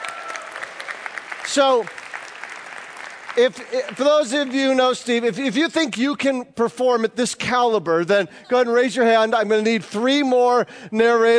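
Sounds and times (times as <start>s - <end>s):
audience applause: 0.0s - 4.9s
speech: 1.5s - 2.0s, 3.4s - 11.3s.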